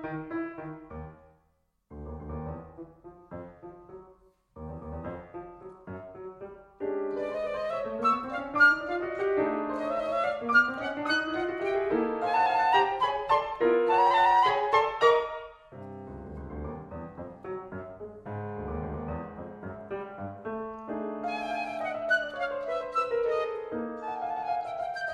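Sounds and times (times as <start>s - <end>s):
sonata for piccolo and piano: 0.0s - 25.1s.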